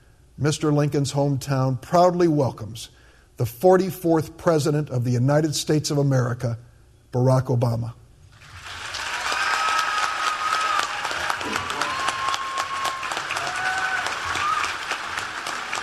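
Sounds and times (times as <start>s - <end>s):
speech: 0.4s - 8.0s
standing ovation applause from crowd: 8.4s - 15.8s.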